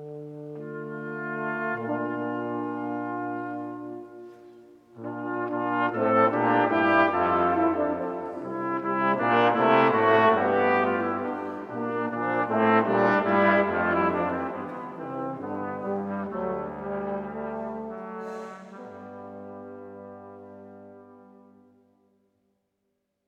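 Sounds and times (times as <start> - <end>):
chamber brass ensemble playing: 0.0 - 21.7.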